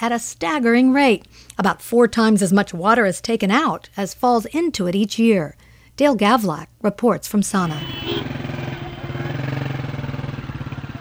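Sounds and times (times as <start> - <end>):
speech: 0.0 - 8.4
street traffic: 0.0 - 10.9
loud continuous motorcycle engine: 7.5 - 10.9.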